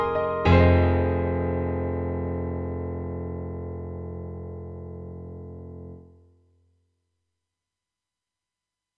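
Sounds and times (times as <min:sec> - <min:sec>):
KORG X5DR synthesizer piano: 0:00.0 - 0:06.2.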